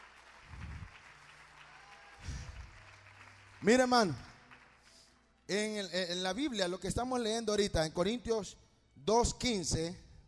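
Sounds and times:
audience applauding: 0.0s - 5.2s
speech: 3.6s - 4.3s, 5.5s - 10.2s.

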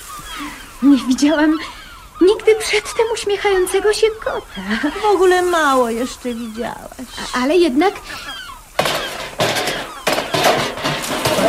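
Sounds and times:
speech: 0.4s - 8.4s
cook throwing pots around: 8.8s - 11.4s.

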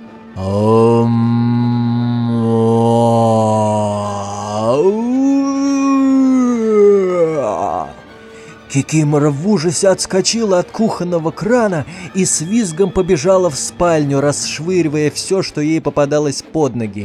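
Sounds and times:
speech: 0.4s - 0.8s, 8.8s - 17.0s
eerie mooing moan made by a human voice: 0.4s - 8.1s.

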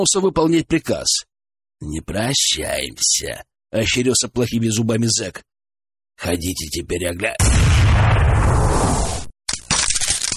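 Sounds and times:
speech: 0.0s - 5.5s, 6.2s - 9.1s
gunshot fired from a stove: 7.4s - 9.3s.

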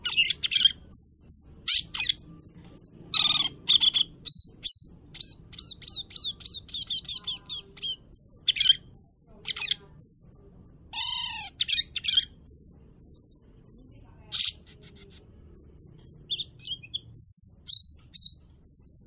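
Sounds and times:
bird singing: 0.0s - 19.0s.

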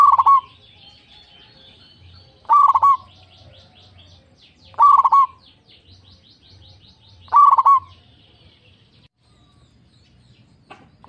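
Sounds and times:
zebra dove cooing: 0.0s - 0.6s, 1.2s - 4.1s, 4.7s - 5.4s, 7.2s - 8.0s.

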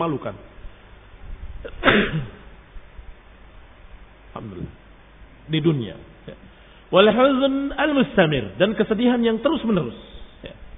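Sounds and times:
speech: 0.0s - 0.5s, 1.6s - 2.4s, 4.4s - 4.8s, 5.5s - 10.6s
sneeze: 1.6s - 2.5s.

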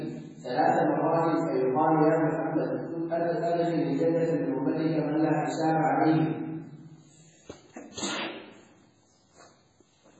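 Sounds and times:
speech: 0.5s - 6.4s
sneeze during a religious lesson: 7.7s - 8.6s.

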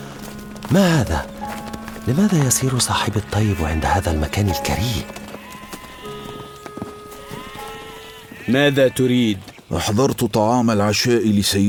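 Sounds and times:
speech: 0.7s - 1.4s, 2.0s - 5.2s, 8.5s - 11.6s
sheep bleating: 0.7s - 9.4s.

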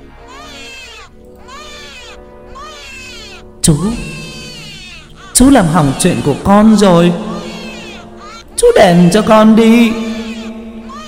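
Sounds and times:
newborn baby crying: 0.0s - 11.0s
speech: 3.6s - 4.2s, 5.4s - 7.3s, 8.8s - 10.0s.

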